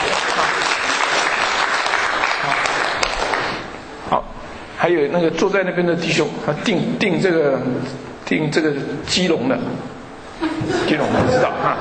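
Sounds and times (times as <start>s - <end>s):
room full of people applauding: 0.0s - 3.7s
speech: 4.8s - 11.7s
laughter: 10.3s - 11.7s.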